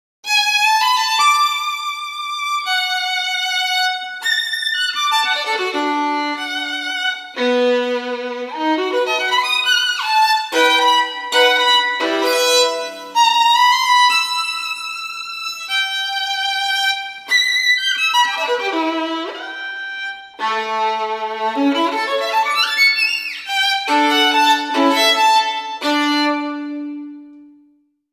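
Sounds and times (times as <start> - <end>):
violin: 0.2 - 27.7.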